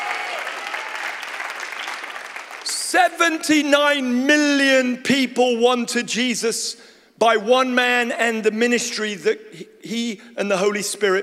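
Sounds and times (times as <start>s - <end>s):
audience applause: 0.0s - 2.8s
speech: 2.9s - 11.2s.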